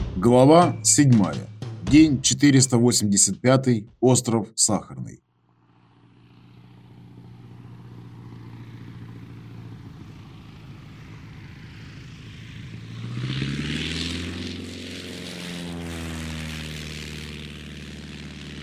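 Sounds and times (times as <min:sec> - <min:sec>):
speech: 0:00.2 - 0:05.3
An-2 propeller biplane engine: 0:04.7 - 0:18.6.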